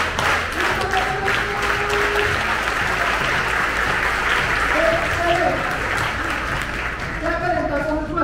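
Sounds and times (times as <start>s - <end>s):
group clapping hands: 0.0s - 8.1s.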